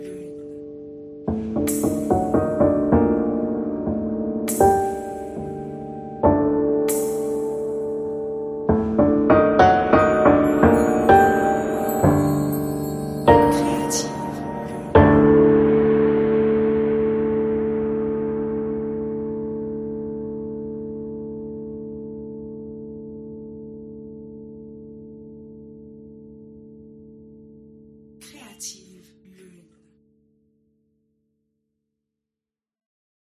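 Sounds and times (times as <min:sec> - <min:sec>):
prepared piano: 0:00.0 - 0:20.2.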